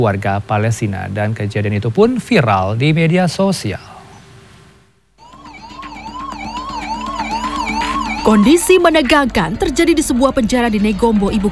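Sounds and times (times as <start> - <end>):
speech: 0.0 - 3.9, 8.3 - 11.5
ambulance sirens wailing: 5.2 - 11.5.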